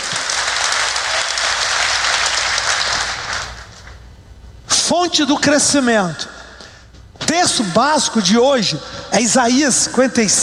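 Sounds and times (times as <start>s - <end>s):
audience applause: 0.0s - 3.8s
speech: 5.0s - 6.3s, 7.4s - 10.4s.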